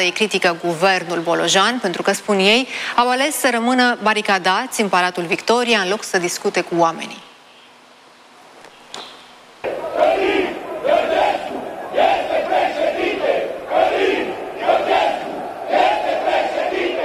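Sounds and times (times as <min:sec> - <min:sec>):
speech: 0:00.0 - 0:07.3
protest crowd chanting in a square: 0:09.6 - 0:17.0.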